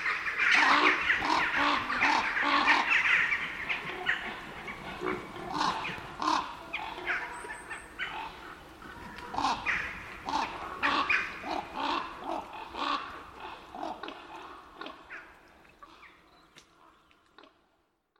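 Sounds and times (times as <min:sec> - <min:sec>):
jackdaws calling: 0:00.0 - 0:13.9
ravens calling: 0:00.0 - 0:17.1.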